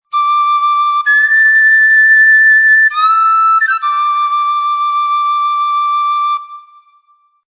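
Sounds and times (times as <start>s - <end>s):
Irish flute melody in D: 0.0s - 7.4s.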